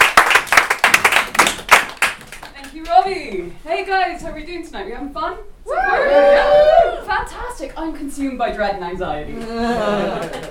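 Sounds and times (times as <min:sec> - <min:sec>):
audience round of applause: 0:00.0 - 0:02.5
speech: 0:03.0 - 0:10.5
laughter: 0:09.3 - 0:10.5.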